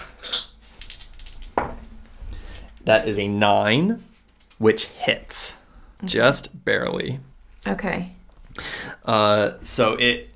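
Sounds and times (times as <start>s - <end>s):
dice rolling on hard surface: 0.0s - 2.1s
speech: 2.9s - 10.3s.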